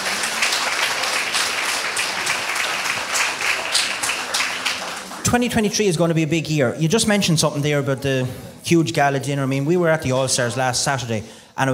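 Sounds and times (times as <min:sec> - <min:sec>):
round of applause: 0:00.0 - 0:05.6
speech: 0:05.2 - 0:11.7.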